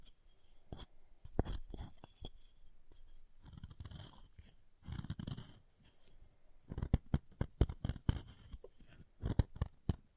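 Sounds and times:
chalk carved and cut, scraping and snapping: 0.0 - 10.0.

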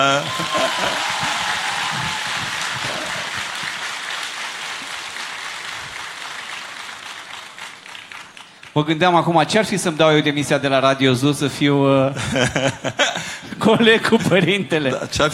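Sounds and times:
laughter: 0.0 - 4.0, 12.1 - 15.3
applause: 0.0 - 8.9
speech: 8.8 - 15.3.

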